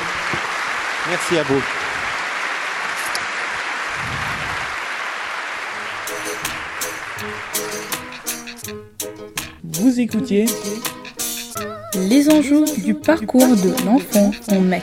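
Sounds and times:
audience applause: 0.0 - 8.4
speech: 1.0 - 1.8, 9.8 - 11.0, 12.0 - 14.8.

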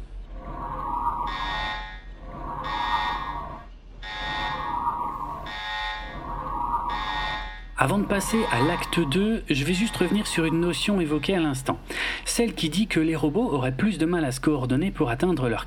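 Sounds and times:
factory sirens sounding an alarm: 0.3 - 11.1
speech: 7.8 - 15.6.

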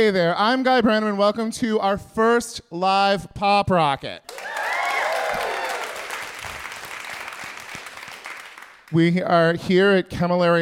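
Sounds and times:
speech: 0.0 - 4.6, 8.9 - 10.6
audience applause: 4.3 - 8.9.

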